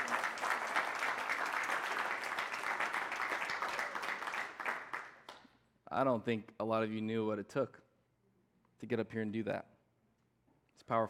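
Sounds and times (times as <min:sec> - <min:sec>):
audience applause: 0:00.0 - 0:05.2
speech: 0:06.0 - 0:07.8, 0:08.8 - 0:09.7, 0:10.9 - 0:11.0.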